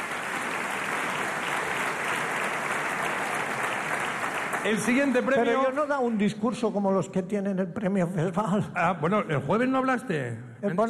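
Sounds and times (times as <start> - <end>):
audience applause: 0.0 - 5.9
speech: 4.6 - 10.8.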